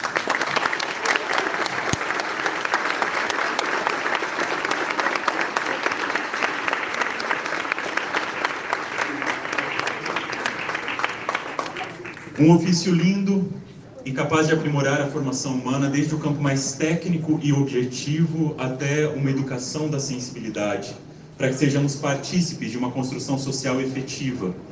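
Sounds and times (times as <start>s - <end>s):
audience applause: 0.0s - 12.6s
speech: 12.4s - 24.6s.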